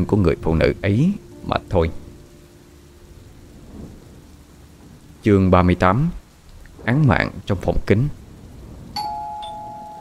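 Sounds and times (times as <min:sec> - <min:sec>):
speech: 0:00.0 - 0:02.0, 0:05.2 - 0:06.2, 0:06.8 - 0:08.2
apartment doorbell chiming two electronic tones: 0:09.0 - 0:10.0.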